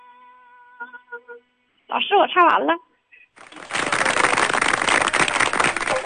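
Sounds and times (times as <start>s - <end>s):
speech: 0.8s - 2.9s
applause: 3.4s - 6.0s.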